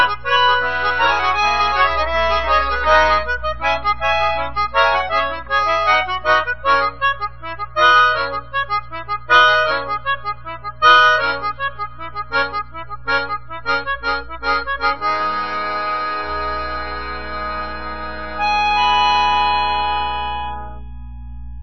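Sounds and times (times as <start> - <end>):
melodica: 0.0 - 21.2.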